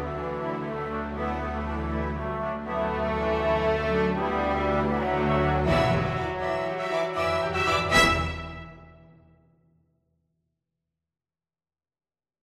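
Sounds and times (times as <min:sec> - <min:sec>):
fanfare: 0:00.1 - 0:09.2.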